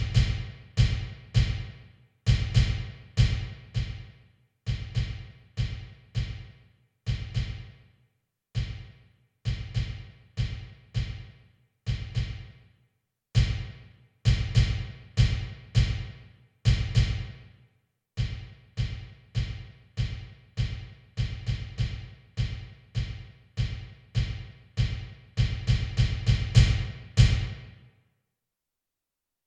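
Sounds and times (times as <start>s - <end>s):
bass drum: 0.0s - 4.1s, 4.7s - 6.5s, 7.1s - 7.7s, 8.6s - 8.9s, 9.5s - 11.3s, 11.9s - 12.5s, 13.4s - 16.1s, 16.7s - 17.3s, 18.2s - 27.6s.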